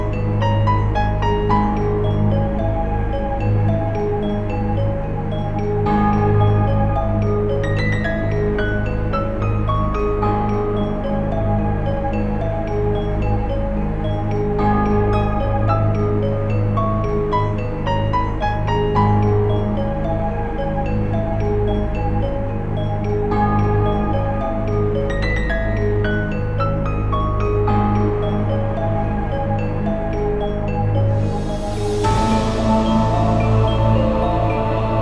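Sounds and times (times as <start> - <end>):
mystery adventure game music loop: 0.0 - 35.0.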